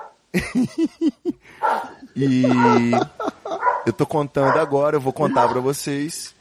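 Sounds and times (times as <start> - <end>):
dogs barking: 0.0 - 0.2, 1.6 - 5.8
speech: 0.3 - 3.2, 3.8 - 6.3
laughter: 0.4 - 3.9.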